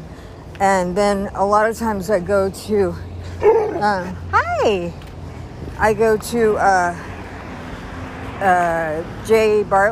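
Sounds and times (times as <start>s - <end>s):
speech: 0.6s - 5.0s, 5.8s - 7.1s, 8.4s - 9.9s
guard dog giving drawn-out whining barks: 3.4s - 4.1s.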